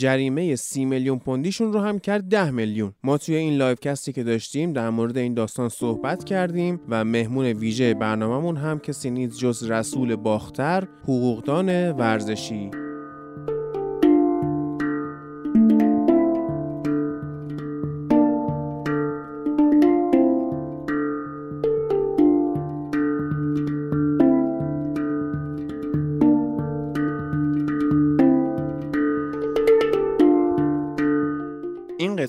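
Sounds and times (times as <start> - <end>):
speech: 0.0 - 12.8
hang drum and tongue drum music: 4.5 - 32.2.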